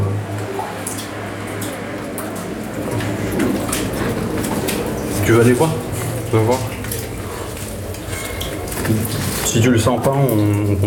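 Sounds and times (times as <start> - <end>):
passing cars: 0.0 - 8.0
speech: 5.3 - 6.8, 9.2 - 10.8.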